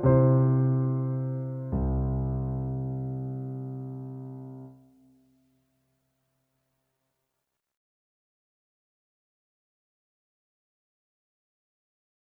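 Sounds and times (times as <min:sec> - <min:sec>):
piano music: 0:00.0 - 0:04.8.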